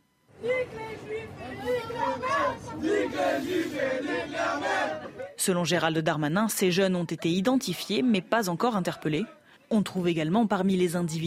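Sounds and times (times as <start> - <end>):
antisemitic chants in the Paris metro: 0.4 - 5.4, 8.0 - 9.5
speech: 0.6 - 11.2.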